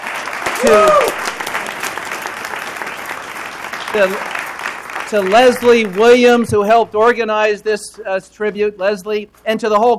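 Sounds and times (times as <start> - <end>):
audience applause: 0.0 - 6.9
speech: 0.6 - 1.1, 3.9 - 4.4, 5.1 - 9.9.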